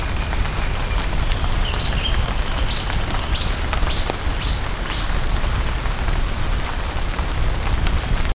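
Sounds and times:
bird calls: 0:00.0 - 0:06.1
heavy rain: 0:00.0 - 0:08.3.

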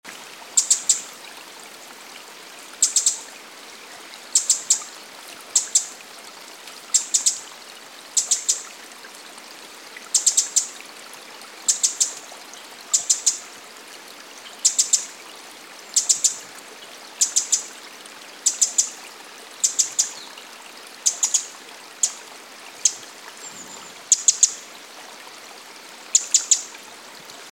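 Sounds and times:
stream flowing: 0:00.0 - 0:27.5
Eurasian wren tick calls: 0:00.6 - 0:01.1, 0:02.8 - 0:03.2, 0:04.4 - 0:04.9, 0:05.5 - 0:05.9, 0:06.9 - 0:07.4, 0:08.2 - 0:08.6, 0:10.2 - 0:10.8, 0:11.7 - 0:12.2, 0:12.9 - 0:13.4, 0:16.0 - 0:16.4, 0:17.2 - 0:17.7, 0:18.4 - 0:19.0, 0:19.6 - 0:20.3, 0:21.0 - 0:22.2, 0:22.8 - 0:24.6, 0:26.1 - 0:26.7.

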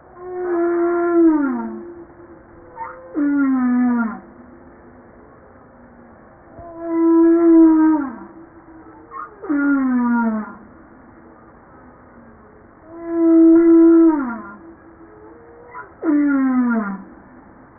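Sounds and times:
humpback whale descending harmonic moans: 0:00.1 - 0:04.5, 0:06.5 - 0:10.8, 0:12.8 - 0:17.3.

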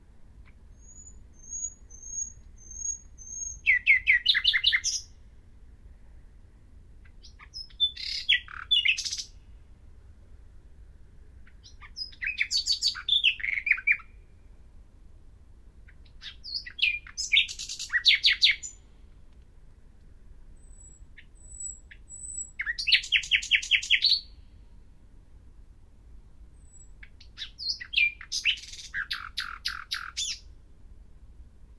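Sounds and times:
common nightingale singing: 0:00.4 - 0:05.2, 0:07.0 - 0:09.6, 0:11.4 - 0:14.6, 0:15.8 - 0:18.9, 0:20.6 - 0:24.5, 0:26.5 - 0:30.5.

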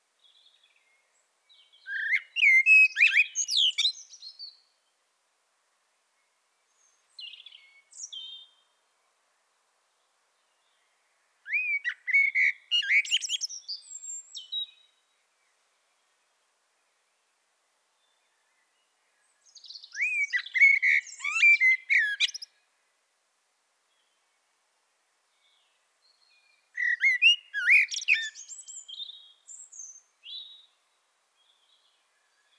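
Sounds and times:
common blackbird singing: 0:01.5 - 0:04.6, 0:06.8 - 0:08.6, 0:11.5 - 0:14.9, 0:19.4 - 0:22.5, 0:25.4 - 0:30.8.

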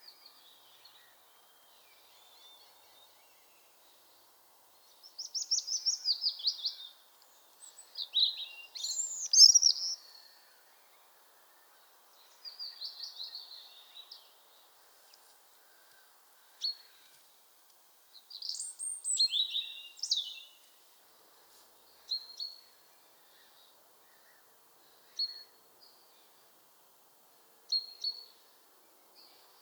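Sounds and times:
hiss: 0:00.0 - 0:29.6
European robin song: 0:05.0 - 0:10.2, 0:18.3 - 0:20.6.

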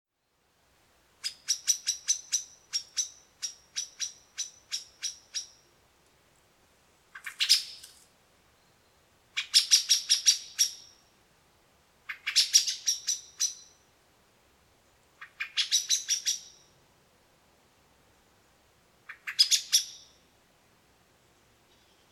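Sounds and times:
common blackbird chak calls: 0:01.2 - 0:05.7, 0:07.1 - 0:07.9, 0:09.4 - 0:11.0, 0:12.1 - 0:13.8, 0:15.2 - 0:16.7, 0:19.0 - 0:20.2.

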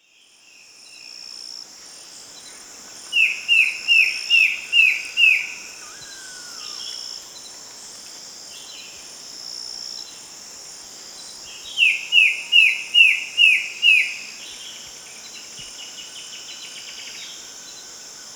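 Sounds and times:
high insect-like hiss: 0:00.2 - 0:18.3
short descending bird chirps: 0:04.4 - 0:07.2.

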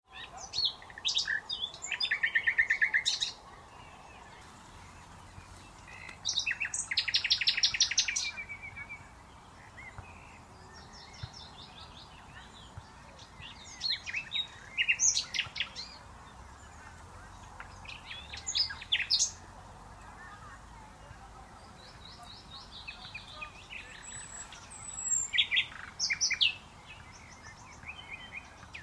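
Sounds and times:
Common nightingale song: 0:00.1 - 0:28.8.

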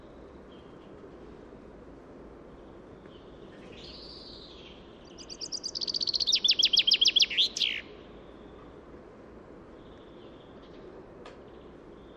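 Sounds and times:
Common chaffinch Fringilla coelebs singing: 0:02.7 - 0:08.6.

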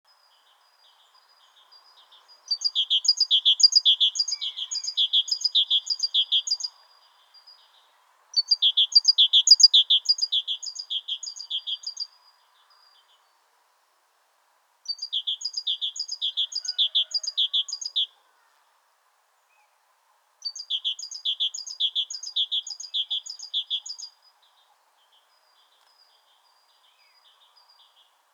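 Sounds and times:
great tit song: 0:01.6 - 0:07.8, 0:08.4 - 0:13.2, 0:14.9 - 0:18.1, 0:20.4 - 0:28.3.

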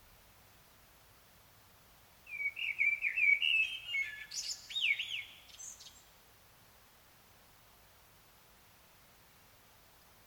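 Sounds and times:
common blackbird singing: 0:02.3 - 0:06.0.

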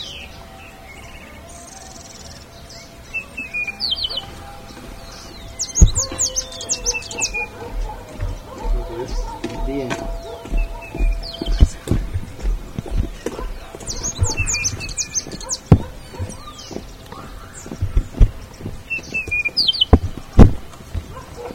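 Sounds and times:
bird chirping: 0:00.0 - 0:21.5.

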